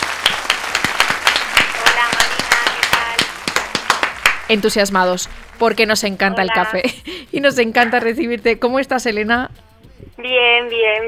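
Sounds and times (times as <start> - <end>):
audience applause: 0.0 - 5.6
speech: 4.5 - 11.0.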